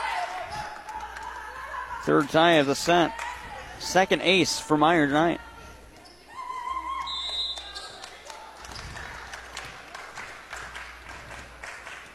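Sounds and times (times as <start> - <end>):
speech: 2.0 - 3.2, 3.8 - 5.4
referee whistle: 7.0 - 8.0.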